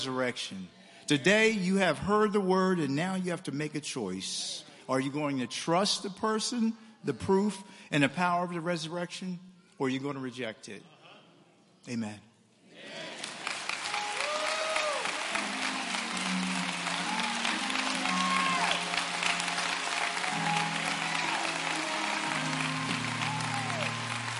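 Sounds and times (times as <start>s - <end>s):
speech: 0.0s - 10.9s, 11.8s - 13.0s
audience applause: 13.0s - 24.3s.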